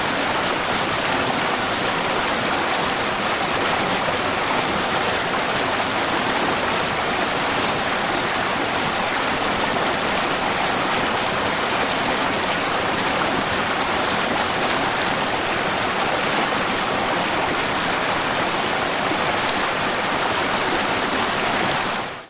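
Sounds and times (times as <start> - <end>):
small multi-step waterfall: 0.0 - 22.2.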